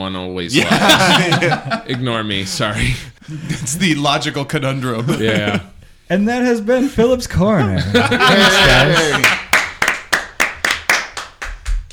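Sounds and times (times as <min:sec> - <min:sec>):
speech: 0:00.0 - 0:09.4
laughter: 0:00.5 - 0:04.0, 0:04.8 - 0:05.8, 0:07.5 - 0:09.6
hands clapping during an improv comedy show: 0:08.6 - 0:11.9.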